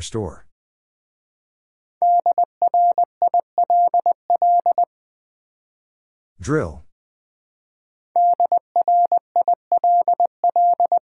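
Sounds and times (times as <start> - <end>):
speech: 0.0 - 0.5, 6.4 - 6.8
mid-pitched electronic Morse code tone beeping dots and dashes: 2.0 - 4.9, 8.2 - 11.0.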